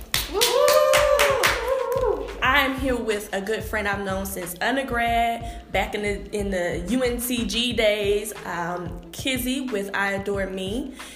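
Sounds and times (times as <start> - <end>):
clapping: 0.0 - 2.2
speech: 2.6 - 11.1.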